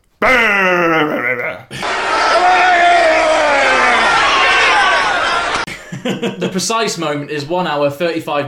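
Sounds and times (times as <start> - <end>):
speech: 0.2 - 1.9, 6.0 - 8.4
wrestler grunting in played clip: 0.2 - 4.2
laughter: 1.7 - 6.6.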